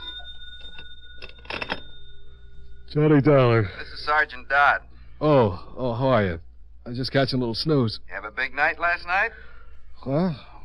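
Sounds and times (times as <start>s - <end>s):
telephone ringing: 0.0s - 4.2s
faint steady hum: 0.0s - 10.6s
speech: 2.9s - 10.5s.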